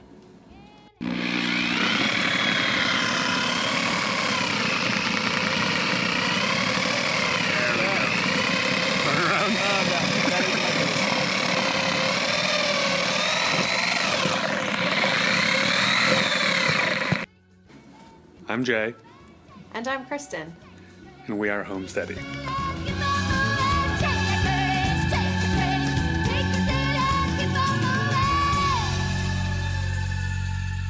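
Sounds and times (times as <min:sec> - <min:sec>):
motorized chicken plucker whirring: 0:01.0 - 0:17.3, 0:22.2 - 0:30.5
speech: 0:18.6 - 0:19.1, 0:19.8 - 0:20.6, 0:21.3 - 0:22.6.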